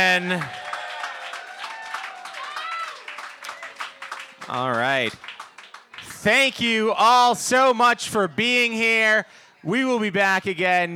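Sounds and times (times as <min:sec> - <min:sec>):
speech: 0:00.0 - 0:00.6, 0:04.5 - 0:05.4, 0:06.2 - 0:10.9
people cheering and whooping: 0:00.0 - 0:04.6
crowd applause: 0:00.0 - 0:06.2.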